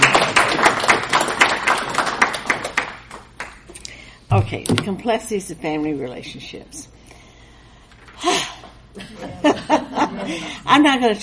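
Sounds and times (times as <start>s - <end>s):
brisk hand clapping: 0.0s - 3.9s
speech: 4.5s - 6.9s, 9.6s - 11.2s
laughter: 9.0s - 10.6s.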